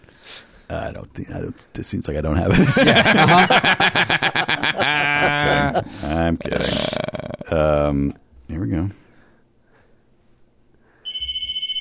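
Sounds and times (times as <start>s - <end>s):
speech: 0.7s - 9.0s
laughter: 2.4s - 6.6s
red telephone ringing: 11.1s - 11.8s.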